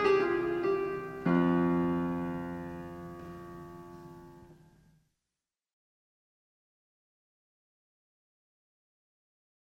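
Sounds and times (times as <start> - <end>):
classical sonata: 0.0 - 4.5.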